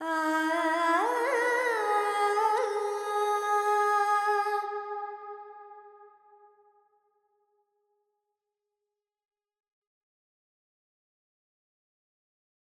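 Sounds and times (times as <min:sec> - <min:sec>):
Carnatic female vocal alap in Phrygian mode: 0:00.0 - 0:05.2.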